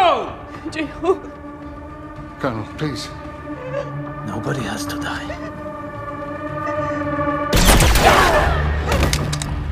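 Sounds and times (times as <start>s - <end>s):
speech: 0.1s - 1.5s, 2.4s - 5.6s
steady low tonal bed: 0.4s - 9.5s
blaster shot from a science-fiction series: 7.5s - 8.4s.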